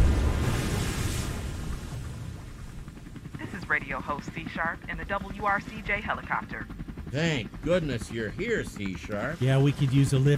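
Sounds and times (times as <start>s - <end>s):
wave crashing: 0.0s - 2.6s
speech: 3.7s - 10.3s.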